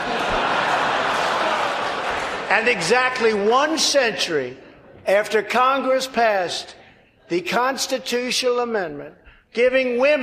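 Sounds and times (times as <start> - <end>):
applause from members of Congress: 0.0 - 2.7
laughter: 0.0 - 3.4
speech: 2.5 - 10.2.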